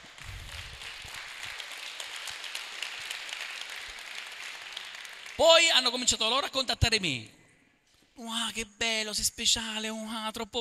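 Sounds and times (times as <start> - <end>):
audience applause: 0.0 - 5.4
speech: 5.4 - 7.4, 8.2 - 10.5.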